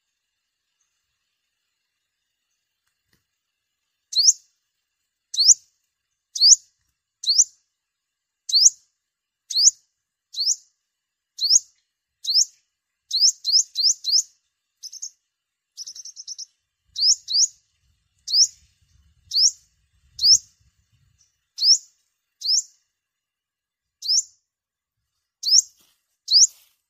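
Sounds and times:
sunbird chirping: 0:04.0 - 0:07.7, 0:08.4 - 0:23.0, 0:23.7 - 0:26.7.

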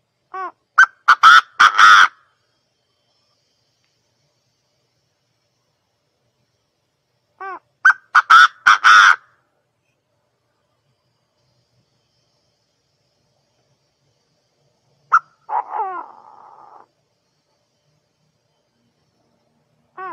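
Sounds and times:
partridge calling: 0:00.3 - 0:02.2, 0:07.4 - 0:09.3, 0:15.1 - 0:16.9.

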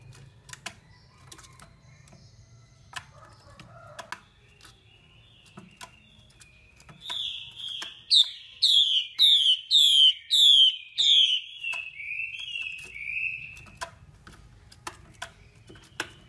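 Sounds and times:
Chinese hwamei singing: 0:06.3 - 0:13.7.

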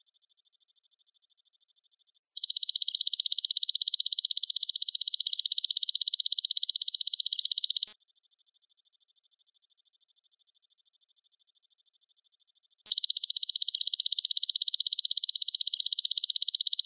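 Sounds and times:
grasshopper trilling: 0:02.4 - 0:07.9, 0:12.9 - 0:16.8.

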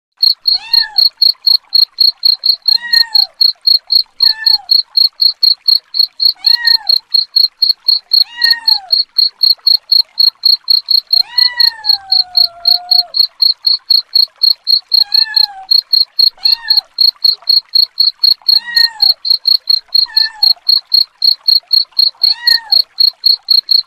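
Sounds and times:
cricket chirping: 0:00.2 - 0:23.8
cat meowing: 0:00.5 - 0:01.2, 0:02.7 - 0:03.4, 0:04.1 - 0:04.7, 0:06.3 - 0:07.1, 0:08.2 - 0:09.1, 0:11.1 - 0:13.2, 0:14.9 - 0:17.0, 0:18.4 - 0:19.2, 0:19.9 - 0:20.7, 0:22.1 - 0:23.0.

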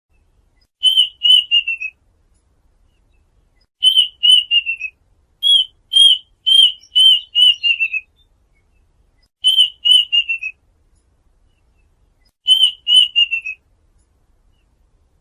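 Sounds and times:
duck whistled calls: 0:03.8 - 0:08.1, 0:09.4 - 0:10.6, 0:12.5 - 0:13.6.

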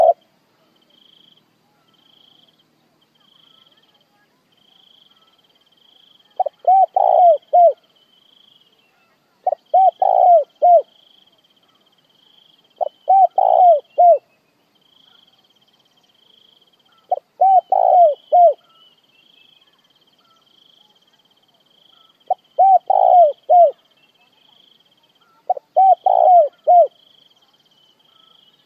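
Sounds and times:
spotted dove cooing: 0:00.0 - 0:00.2, 0:06.3 - 0:07.8, 0:09.4 - 0:10.9, 0:12.8 - 0:14.3, 0:16.9 - 0:18.8, 0:22.0 - 0:23.9, 0:25.2 - 0:27.0.

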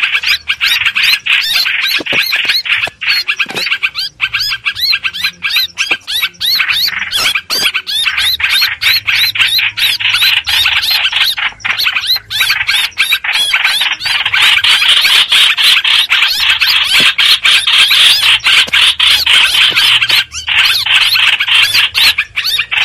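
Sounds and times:
streak-eared bulbul scolding raspy squawks: 0:00.0 - 0:22.8.

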